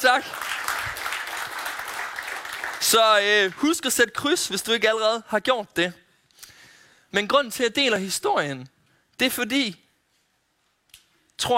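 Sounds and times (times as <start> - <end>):
speech: 0.0 - 0.5, 2.8 - 6.0, 7.1 - 9.8, 11.4 - 11.5
audience applause: 0.0 - 3.7.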